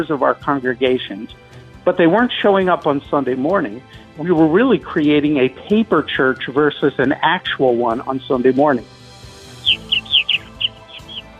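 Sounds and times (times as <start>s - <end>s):
speech: 0.0s - 9.0s
purple martin gurgling chirps: 9.5s - 11.3s.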